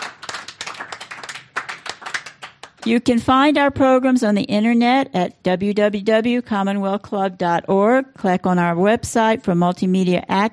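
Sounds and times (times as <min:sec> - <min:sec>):
audience applause: 0:00.0 - 0:02.8
speech: 0:02.8 - 0:10.5.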